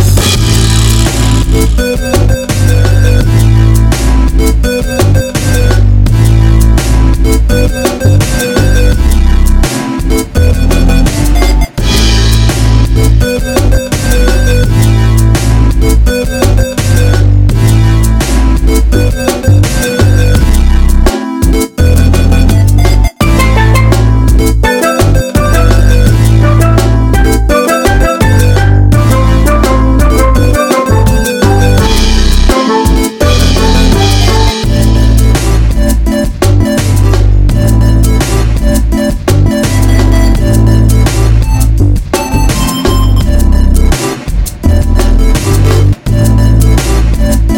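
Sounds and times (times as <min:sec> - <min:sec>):
chiptune music: 0:00.2 - 0:44.0, 0:44.7 - 0:47.5.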